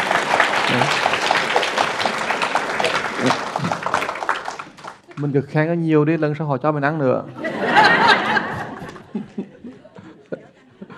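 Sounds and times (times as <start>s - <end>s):
audience applause: 0.0s - 5.7s, 7.7s - 9.8s
speech: 0.7s - 1.1s, 5.2s - 8.1s
laughter: 6.9s - 10.9s.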